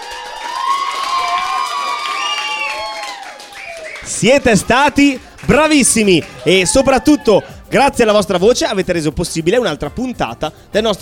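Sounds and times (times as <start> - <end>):
children cheering and applauding: 0.0 - 7.6
speech: 4.2 - 11.0.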